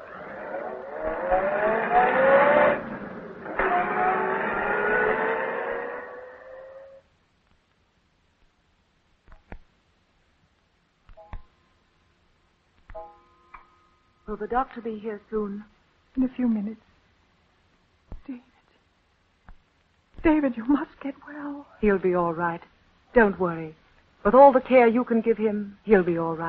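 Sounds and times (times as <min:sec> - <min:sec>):
car engine revving and accelerating away: 0:00.0 - 0:07.0
speech: 0:14.3 - 0:16.9, 0:18.3 - 0:18.5, 0:20.2 - 0:26.4.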